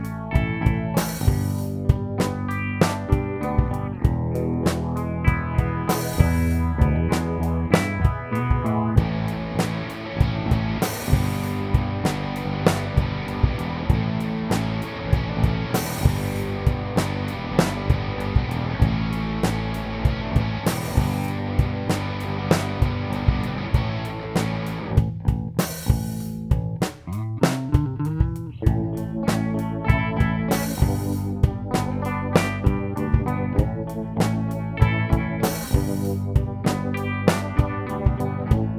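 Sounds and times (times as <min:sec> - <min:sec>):
raw unmixed song through guitar effect pedals: 0:00.0 - 0:38.7.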